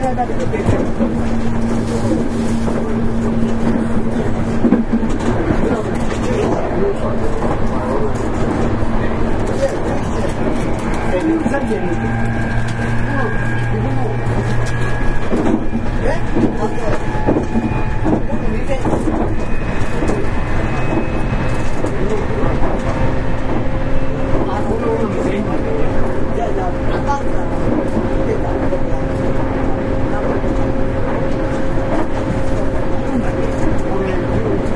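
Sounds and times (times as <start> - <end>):
Nankai 8300 series airport express train running rumble and hum: 0.0 - 34.7
voices murmuring: 1.8 - 34.7
Nankai 8300 series train motor tones: 10.0 - 24.6.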